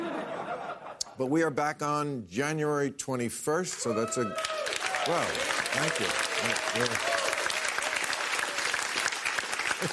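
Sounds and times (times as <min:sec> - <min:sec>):
laughter: 0:00.0 - 0:01.1, 0:09.6 - 0:09.9
speech: 0:01.2 - 0:07.2, 0:09.8 - 0:09.9
audience clapping: 0:03.7 - 0:09.9.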